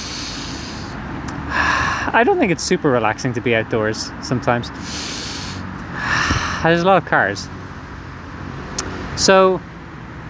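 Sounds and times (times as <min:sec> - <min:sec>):
person taking a deep breath: 0:00.0 - 0:02.2, 0:04.7 - 0:06.7
speech: 0:02.1 - 0:05.2, 0:06.6 - 0:07.6, 0:09.2 - 0:09.7.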